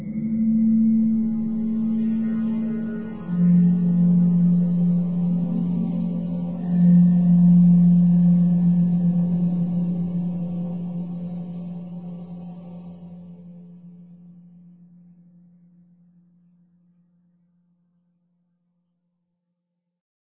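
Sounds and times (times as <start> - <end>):
drone: 0.0 - 14.7.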